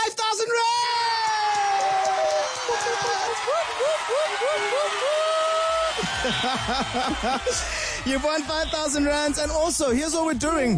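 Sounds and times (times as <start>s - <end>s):
studio cheering: 0.5s - 10.7s
laughter: 2.4s - 5.1s, 5.8s - 8.7s
speech: 6.2s - 10.7s.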